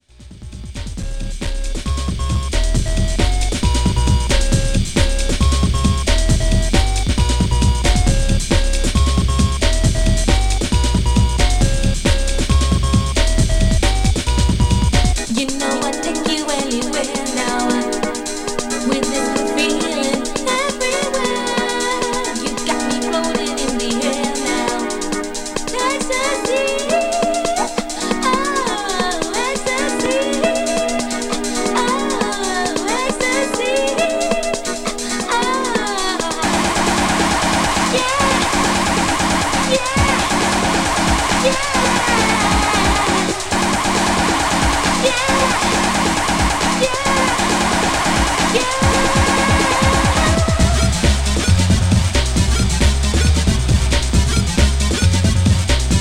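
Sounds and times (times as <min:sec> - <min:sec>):
rhythmic beat: 0:00.1 - 0:56.0.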